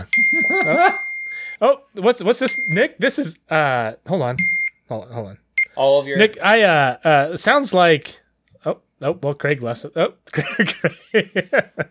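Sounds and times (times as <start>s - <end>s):
speech: 0.0s - 1.0s, 1.6s - 11.8s
laughter: 0.0s - 1.2s, 10.3s - 11.8s
phone ringing with short electronic ringtone: 0.0s - 1.7s.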